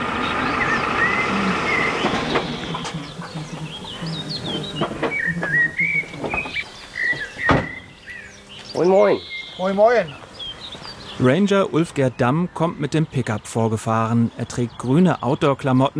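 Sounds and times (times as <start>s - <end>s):
geese flying overhead: 0.0s - 8.5s
speech: 8.8s - 10.2s, 11.2s - 15.9s.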